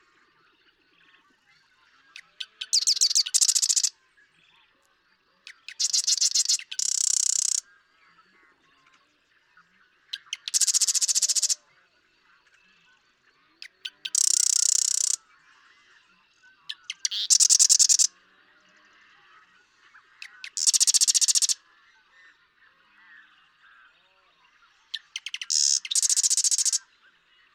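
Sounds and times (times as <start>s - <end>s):
marsh wren rattling trill song: 2.7s - 3.9s, 5.7s - 7.6s, 10.5s - 11.6s, 14.1s - 15.2s, 16.9s - 18.1s, 20.5s - 21.6s, 25.1s - 26.8s.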